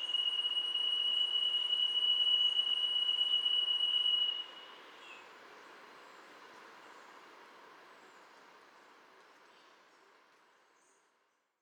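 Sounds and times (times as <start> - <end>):
Spotted jewel-babbler Ptilorrhoa leucosticta giving thin high pulsing whistle: 0.0 - 4.8.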